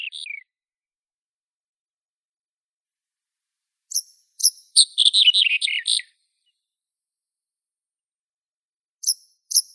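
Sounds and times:
red-headed bunting Emberiza bruniceps: 0:03.9 - 0:06.1.

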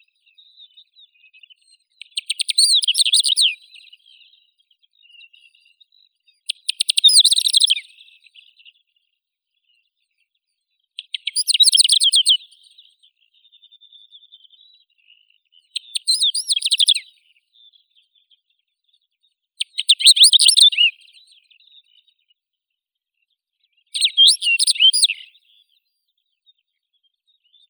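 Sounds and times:
Calandrella brachydactyla lark singing: 0:02.0 - 0:04.0, 0:06.5 - 0:08.0, 0:11.0 - 0:12.6, 0:15.8 - 0:17.1, 0:19.6 - 0:21.2, 0:24.0 - 0:25.4.

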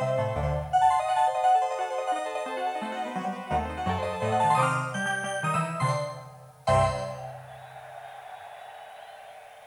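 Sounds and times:
keyboard solo: 0:00.0 - 0:07.5.

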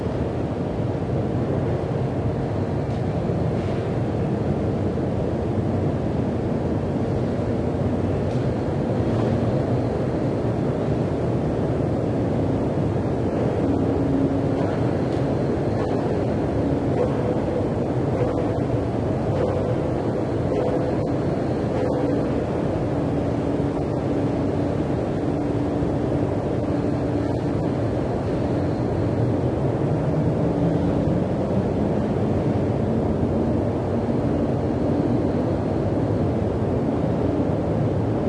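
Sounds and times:
steel mill ambience: 0:00.0 - 0:38.2.

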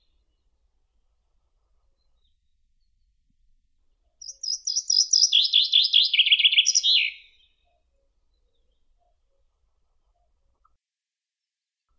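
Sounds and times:
chaffinch Fringilla coelebs: 0:04.2 - 0:07.3.

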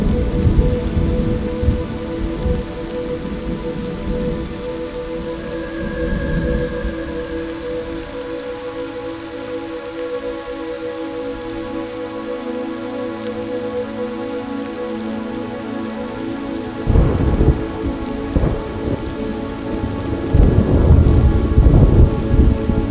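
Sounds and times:
thunderstorm: 0:00.0 - 0:08.4, 0:16.8 - 0:22.8
healing music: 0:00.0 - 0:22.8.

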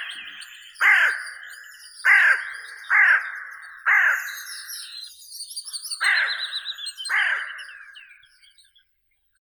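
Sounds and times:
carrion crow Corvus corone calling: 0:00.8 - 0:01.4, 0:02.0 - 0:04.8, 0:06.0 - 0:08.2.

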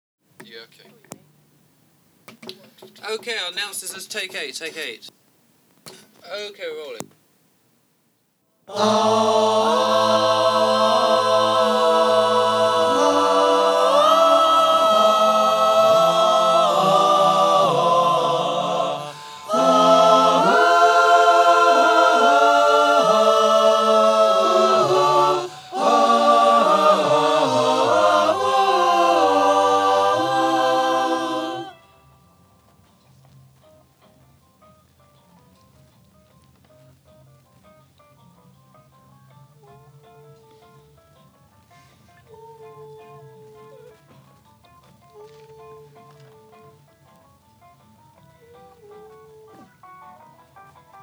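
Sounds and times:
vocal mix music: 0:08.7 - 0:32.2.

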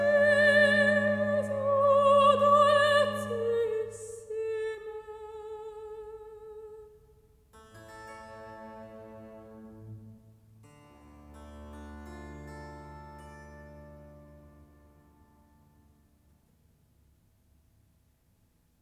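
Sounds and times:
recitative singing: 0:00.0 - 0:06.8.

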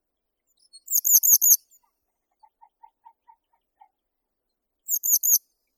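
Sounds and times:
eastern yellow wagtail Motacilla tschutschensis calling: 0:01.0 - 0:03.9.

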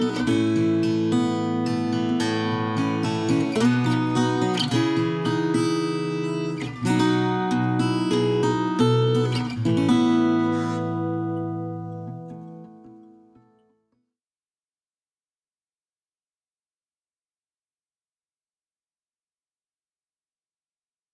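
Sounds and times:
acoustic music: 0:00.0 - 0:13.5.

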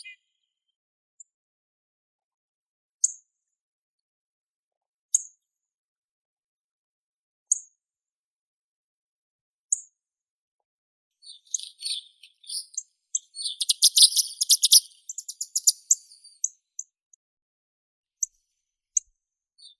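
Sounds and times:
little bunting Emberiza pusilla calling: 0:11.3 - 0:12.8, 0:13.4 - 0:15.9.

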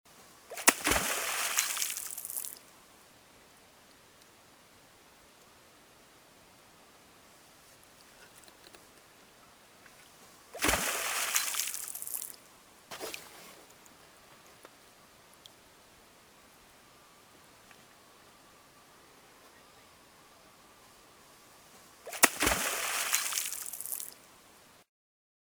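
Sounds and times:
Canadian beaver Castor canadensis tail slap: 0:00.5 - 0:02.5, 0:10.6 - 0:12.3, 0:22.1 - 0:24.1.

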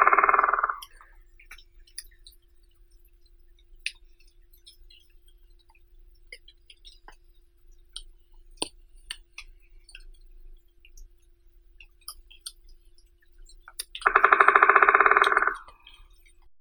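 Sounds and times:
white-backed woodpecker Dendrocopos leucotos: 0:00.0 - 0:01.0, 0:14.0 - 0:15.8.

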